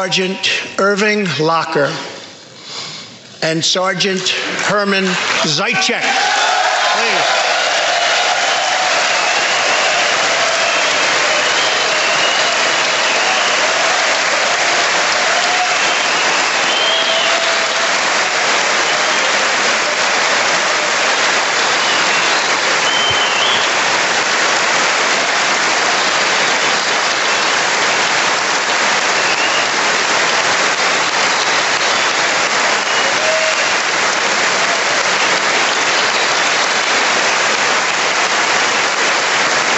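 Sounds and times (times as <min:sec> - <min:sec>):
speech: 0:00.0 - 0:02.1, 0:03.4 - 0:06.4
crowd applause: 0:04.3 - 0:39.7.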